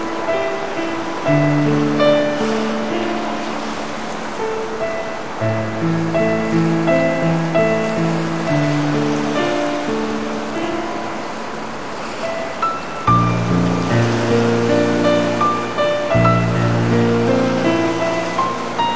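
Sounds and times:
sea waves: 0:00.0 - 0:18.9
sustained musical chords with low bass notes: 0:13.0 - 0:18.9.

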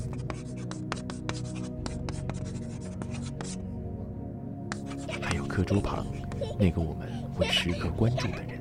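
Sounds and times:
chalk scraping across a blackboard: 0:00.0 - 0:03.6, 0:04.7 - 0:05.5
speech: 0:05.6 - 0:08.5.

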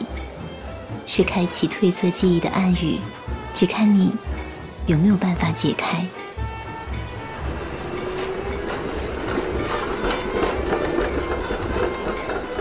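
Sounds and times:
tram running on a white stone road: 0:00.0 - 0:12.5
speech: 0:01.1 - 0:06.2.

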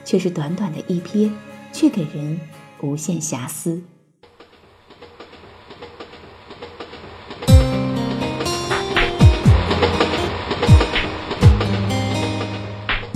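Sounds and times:
speech: 0:00.1 - 0:03.9
train wheels clacking over rail joints: 0:04.3 - 0:13.1.

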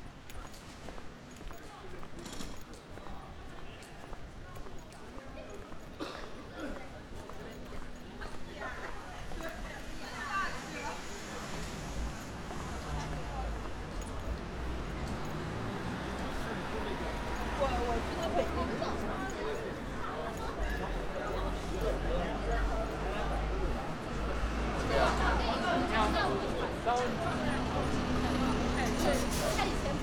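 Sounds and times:
people chattering in Daehak-ro street: 0:00.0 - 0:30.0.

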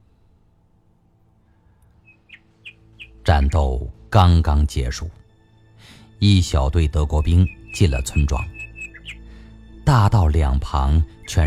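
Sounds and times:
nightingale singing: 0:02.0 - 0:04.8, 0:06.2 - 0:11.4
speech: 0:03.5 - 0:05.2, 0:06.2 - 0:08.6, 0:09.9 - 0:11.4.

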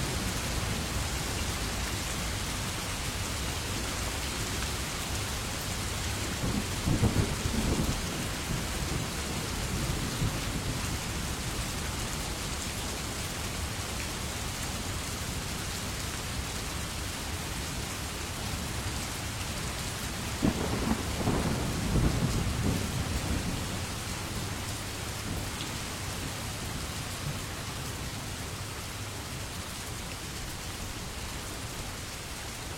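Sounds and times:
rain falling: 0:00.0 - 0:32.7
thunder rumbling: 0:20.4 - 0:24.4.

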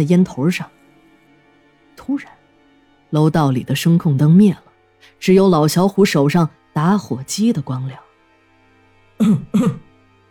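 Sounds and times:
speech: 0:00.0 - 0:00.8, 0:02.1 - 0:02.4, 0:03.1 - 0:08.0, 0:09.2 - 0:09.8
person coughing: 0:09.2 - 0:09.9.

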